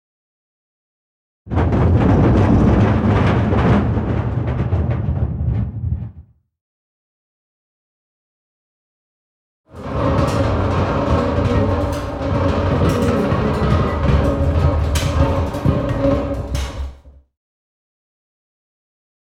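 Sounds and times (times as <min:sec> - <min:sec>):
barrel rolling: 0:01.5 - 0:06.2, 0:09.7 - 0:17.2.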